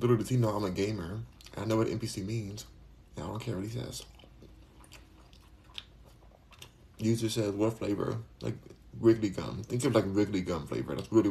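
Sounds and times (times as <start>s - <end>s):
speech: 0.0s - 4.1s, 7.0s - 11.2s
person chewing jackfruit: 3.9s - 7.0s.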